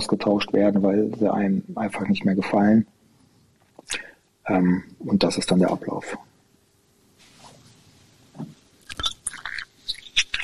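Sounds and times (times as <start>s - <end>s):
speech: 0.0s - 3.0s, 3.9s - 6.3s
person taking a sip of water: 8.8s - 9.8s.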